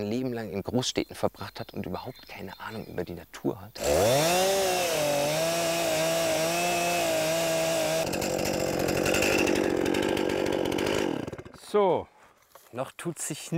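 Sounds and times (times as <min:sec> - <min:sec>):
speech: 0:00.0 - 0:05.2, 0:11.7 - 0:13.5
chainsaw cutting while felling a tree: 0:03.8 - 0:11.8.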